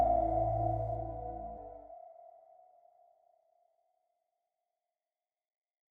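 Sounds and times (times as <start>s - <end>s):
ocean drone: 0.0s - 1.8s.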